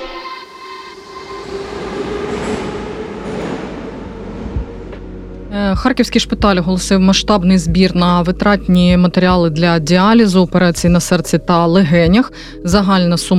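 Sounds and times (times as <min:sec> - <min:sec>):
metro train rolling rumble with faint squealing: 0:00.4 - 0:08.0
metro train wheels clacking over rail joints at Derzhprom station in Kharkiv: 0:01.2 - 0:05.8
speech: 0:05.8 - 0:13.3.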